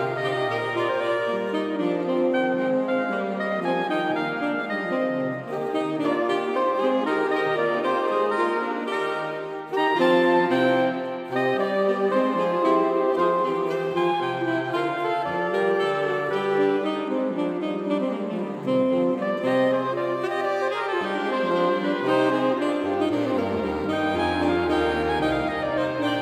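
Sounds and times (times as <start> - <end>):
saxophone quartet playing a Renaissance four-part fantasia: 0.0 - 26.2.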